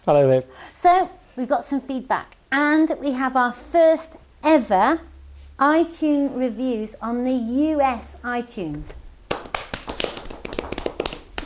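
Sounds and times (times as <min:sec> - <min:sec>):
speech: 0:00.0 - 0:09.0
clapping: 0:09.3 - 0:11.4.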